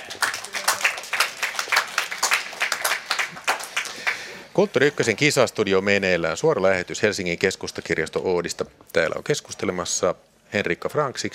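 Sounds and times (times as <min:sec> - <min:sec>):
crowd applauding: 0:00.0 - 0:04.5
speech: 0:04.6 - 0:11.3.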